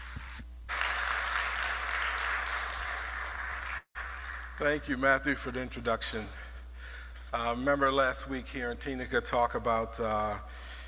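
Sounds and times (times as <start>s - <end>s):
audience applause at a church service welcoming a presenter: 0.7s - 4.7s
speech: 4.6s - 6.4s, 7.3s - 10.5s.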